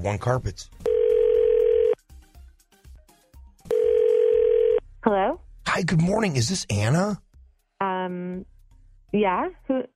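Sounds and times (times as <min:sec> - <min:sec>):
speech: 0:00.0 - 0:00.9, 0:05.0 - 0:07.2, 0:08.1 - 0:08.5, 0:09.1 - 0:09.9
phone line ringing out: 0:00.8 - 0:02.0, 0:03.7 - 0:04.8.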